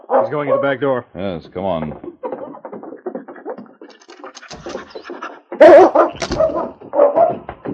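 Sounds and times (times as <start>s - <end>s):
dog barking: 0.0s - 0.8s, 4.2s - 7.5s
speech: 0.2s - 2.1s
dog whimpering and sniffing on a scent: 2.3s - 6.7s.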